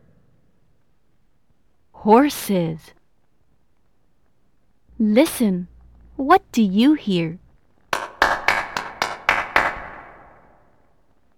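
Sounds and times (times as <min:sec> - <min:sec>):
speech: 0:02.0 - 0:03.0, 0:05.0 - 0:07.4
hands clapping: 0:07.9 - 0:10.6.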